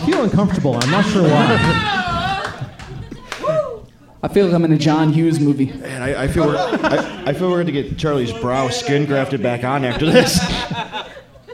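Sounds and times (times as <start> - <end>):
speech: 0.2 - 2.1, 4.2 - 11.2
laughter: 0.8 - 3.8, 5.4 - 11.5
slow clap: 2.4 - 3.7.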